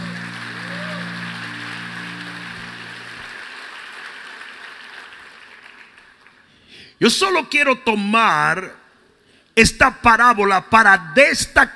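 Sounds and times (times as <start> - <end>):
audience applauding: 0.0 - 6.5
speech: 7.0 - 8.8, 9.6 - 11.7.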